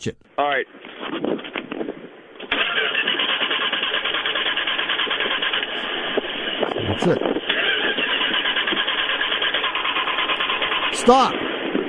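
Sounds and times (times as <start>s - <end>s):
speech: 0.0s - 1.9s, 6.9s - 7.3s, 10.9s - 11.8s
car engine with a weak spark cranked, then idling: 2.5s - 11.0s.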